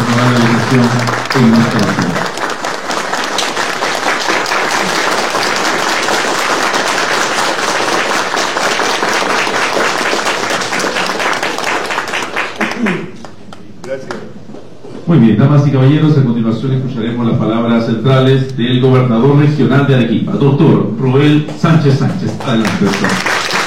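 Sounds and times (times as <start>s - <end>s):
audience applause: 0.0s - 13.4s, 22.1s - 23.6s
speech: 0.7s - 2.3s, 15.1s - 23.3s.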